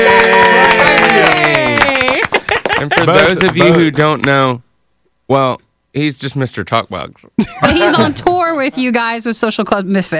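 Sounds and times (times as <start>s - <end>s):
audience clapping for a guest musician: 0.0s - 4.4s
speech: 3.1s - 4.6s, 5.3s - 10.1s.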